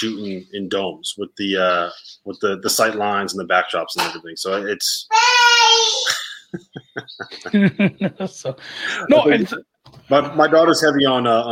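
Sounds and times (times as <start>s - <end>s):
speech: 0.0s - 11.4s
child yelling in the background: 5.1s - 6.1s
laughter: 6.1s - 9.6s.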